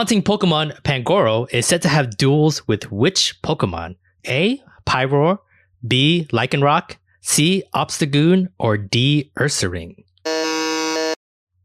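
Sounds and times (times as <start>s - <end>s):
speech: 0.0s - 10.4s
quiz buzzer: 10.3s - 11.2s.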